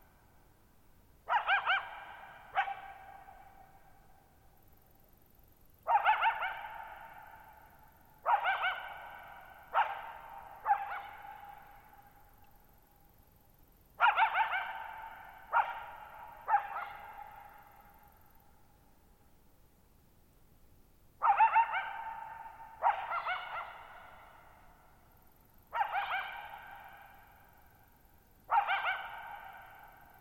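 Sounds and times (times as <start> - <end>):
coyote barking and yipping: 1.3 - 3.8, 5.9 - 7.6, 8.2 - 11.9, 14.0 - 17.9, 21.2 - 24.6, 25.7 - 27.4, 28.5 - 30.1.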